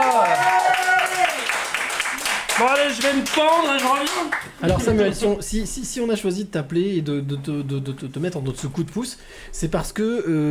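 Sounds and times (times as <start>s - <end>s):
person whooping: 0.0s - 1.4s
audience applause: 0.0s - 4.8s
speech: 2.6s - 10.4s.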